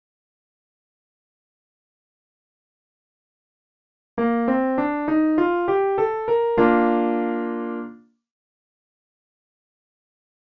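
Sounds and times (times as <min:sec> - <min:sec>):
easy I V7 chord progression: 0:04.2 - 0:07.9.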